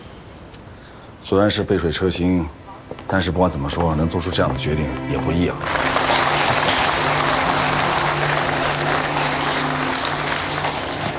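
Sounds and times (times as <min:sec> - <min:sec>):
speech: 0:01.2 - 0:06.0
audience applause: 0:05.6 - 0:11.1.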